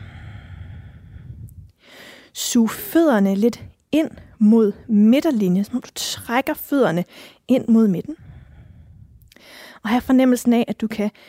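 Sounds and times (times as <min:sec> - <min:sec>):
breathing during a yoga exercise in warrior II pose: 0:00.0 - 0:02.4, 0:07.1 - 0:07.4, 0:08.2 - 0:09.8
speech: 0:02.3 - 0:08.3, 0:09.4 - 0:11.2.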